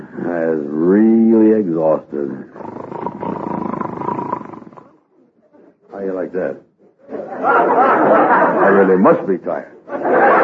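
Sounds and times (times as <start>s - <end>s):
speech: 0.5s - 3.4s, 6.3s - 6.7s, 7.4s - 10.4s
snoring: 2.4s - 5.0s
laughter: 7.1s - 10.4s.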